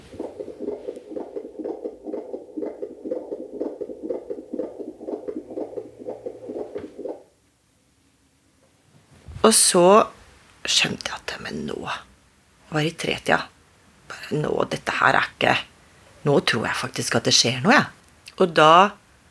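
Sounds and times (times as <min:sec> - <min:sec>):
fetal heartbeat on a Doppler monitor recorded by a midwife: 0:00.0 - 0:07.3
speech: 0:09.4 - 0:12.1, 0:12.7 - 0:13.5, 0:14.3 - 0:19.0.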